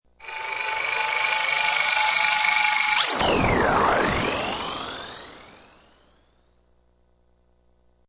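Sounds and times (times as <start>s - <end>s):
space ship blasts: 0.2s - 6.2s
long high pitch surge: 0.2s - 6.3s.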